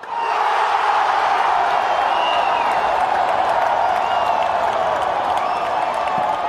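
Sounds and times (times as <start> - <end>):
football stadium crowd cheering and chanting: 0.0 - 6.4
whistles: 1.8 - 6.4.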